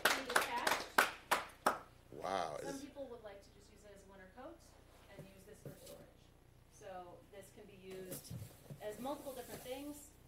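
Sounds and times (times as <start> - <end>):
hands clapping: 0.0 - 1.9
speech: 6.8 - 10.1.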